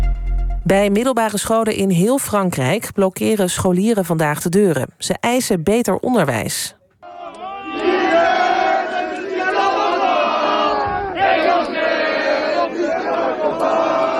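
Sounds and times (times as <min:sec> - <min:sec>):
speech: 0:00.6 - 0:06.8
students singing a national anthem in Grenoble: 0:07.0 - 0:14.1.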